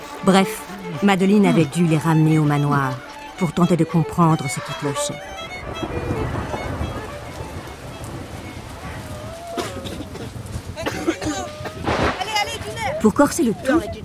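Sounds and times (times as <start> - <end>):
rain: 0.0 - 1.0, 5.2 - 14.0
speech: 0.2 - 6.4, 13.0 - 14.0
thunder: 5.5 - 13.0.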